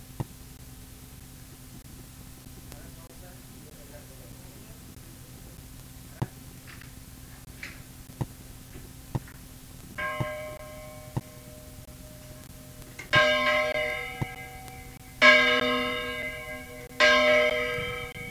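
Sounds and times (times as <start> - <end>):
bell: 10.0 - 12.4, 13.1 - 18.2.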